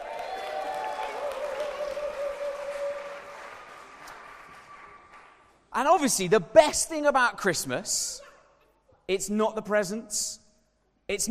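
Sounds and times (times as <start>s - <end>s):
round of applause: 0.0s - 5.7s
speech: 5.8s - 8.2s, 9.1s - 10.4s, 11.1s - 11.2s.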